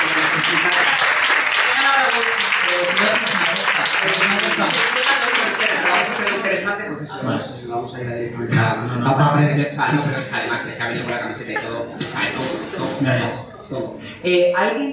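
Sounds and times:
applause: 0:00.0 - 0:06.7
laughter: 0:02.8 - 0:04.8, 0:09.8 - 0:14.0
speech: 0:04.0 - 0:14.9.

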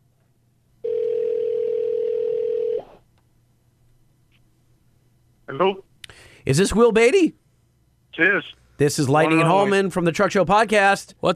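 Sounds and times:
telephone dial tone: 0:00.8 - 0:02.8
speech: 0:06.4 - 0:07.4, 0:08.2 - 0:11.3.

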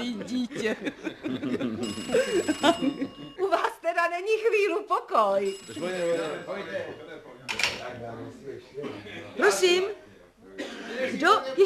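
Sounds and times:
laughter: 0:00.0 - 0:03.5
speech: 0:00.0 - 0:10.0, 0:10.6 - 0:11.6
telephone ringing: 0:01.8 - 0:04.0, 0:05.1 - 0:07.8.

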